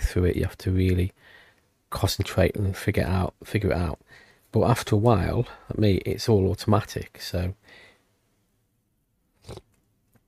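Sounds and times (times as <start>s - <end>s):
speech: 0.1s - 7.9s, 9.5s - 9.7s
person sipping coffee: 9.3s - 9.8s.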